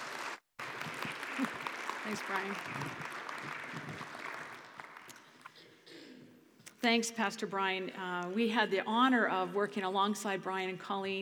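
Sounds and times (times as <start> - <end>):
church congregation applauding to welcome a guest speaker: 0.0 - 5.6
speech: 2.1 - 4.0, 6.8 - 11.2.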